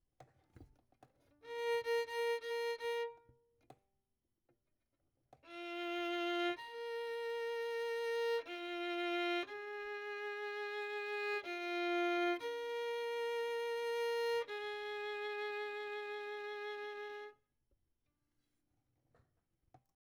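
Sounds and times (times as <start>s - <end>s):
violin: 1.4s - 3.4s, 5.4s - 17.4s.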